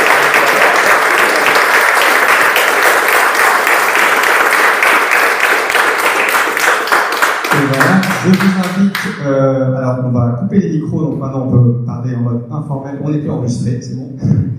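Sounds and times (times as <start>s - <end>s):
audience applause: 0.0s - 9.2s
speech: 8.2s - 14.5s.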